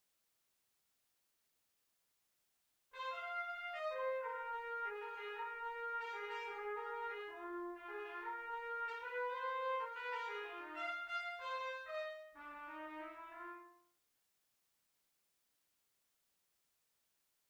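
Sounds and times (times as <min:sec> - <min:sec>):
Bb trumpet: 0:03.0 - 0:13.9.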